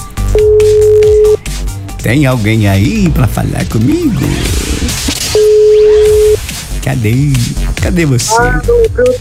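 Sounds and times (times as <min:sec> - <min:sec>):
telephone line tones of a call placed to a radio listener: 0:00.3 - 0:01.4, 0:05.4 - 0:06.4
speech: 0:02.0 - 0:04.6, 0:06.9 - 0:09.1.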